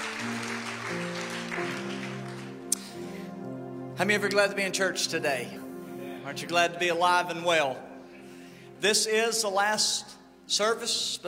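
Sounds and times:
audience applauding: 0.0s - 3.0s
speech: 4.0s - 5.6s, 6.3s - 7.9s, 8.8s - 11.2s.

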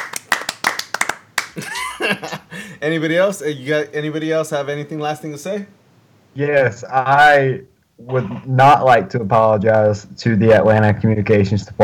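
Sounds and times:
round of applause: 0.0s - 2.1s
laughter: 1.4s - 2.8s
speech: 1.6s - 5.8s, 6.4s - 11.8s.

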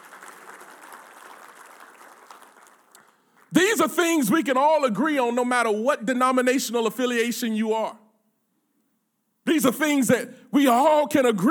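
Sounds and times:
audience applause: 0.0s - 3.5s
speech: 3.5s - 8.0s, 9.6s - 11.4s.

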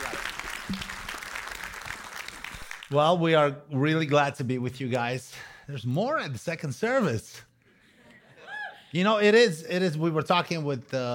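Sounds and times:
church audience applause welcoming a pastor at a service: 0.0s - 3.0s
speech: 2.9s - 7.5s, 8.9s - 11.1s.

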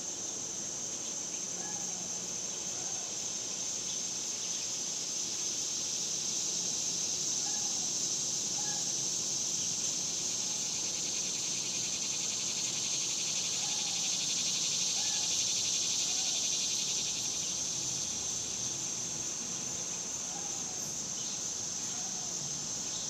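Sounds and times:
cicada chorus drone: 0.0s - 23.0s.

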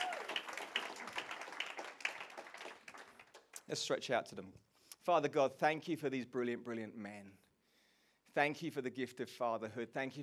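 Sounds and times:
crowd applauding: 0.0s - 3.6s
speech: 3.7s - 7.4s, 8.4s - 10.2s.

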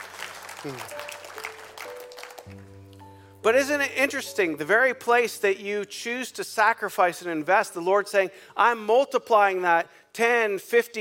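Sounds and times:
audience applause: 0.0s - 2.7s
speech: 0.6s - 1.1s, 3.4s - 10.9s
sustained low keyboard chords: 0.7s - 6.6s.

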